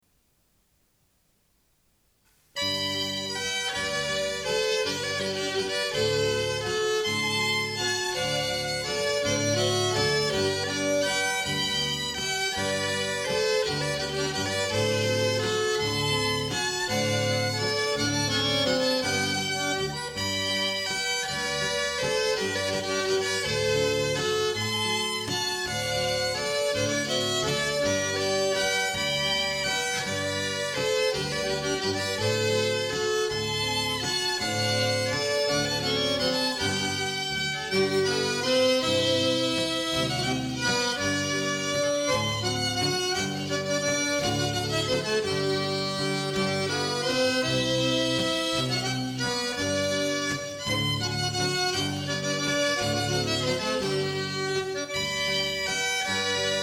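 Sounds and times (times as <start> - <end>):
waltz music: 2.6 - 56.6.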